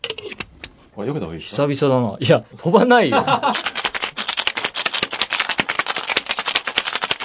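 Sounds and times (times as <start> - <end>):
speech: 1.0 - 3.8
laughter: 3.1 - 3.8
cocktail shaker being shaken: 3.5 - 7.2.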